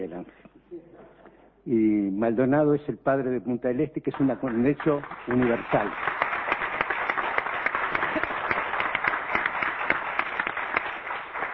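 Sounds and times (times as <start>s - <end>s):
speech: 0.0s - 0.4s, 1.7s - 6.2s
audience applause: 4.5s - 11.5s.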